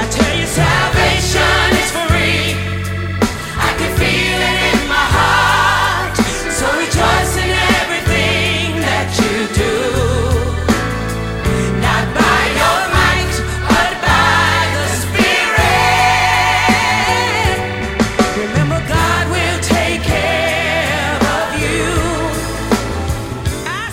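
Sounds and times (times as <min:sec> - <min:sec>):
choir singing: 0:00.1 - 0:23.7.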